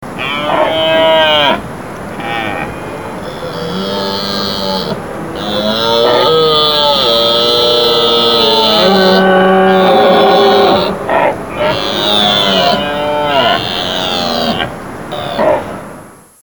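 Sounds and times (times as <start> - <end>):
stag bellowing: 0.2 - 16.0.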